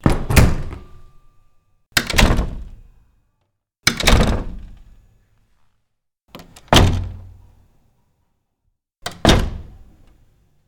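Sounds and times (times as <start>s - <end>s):
door closing: 0.0s - 1.2s, 2.0s - 2.8s, 3.8s - 4.9s, 6.3s - 7.4s, 9.0s - 10.2s.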